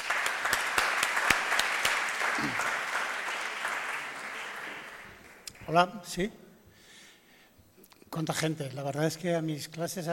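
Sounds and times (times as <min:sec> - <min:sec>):
audience applause: 0:00.0 - 0:05.5
speech: 0:05.7 - 0:06.4, 0:08.2 - 0:10.1.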